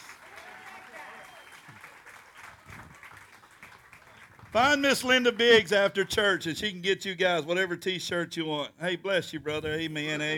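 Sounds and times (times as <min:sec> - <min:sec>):
crowd applauding: 0:00.0 - 0:06.1
speech: 0:04.5 - 0:10.3.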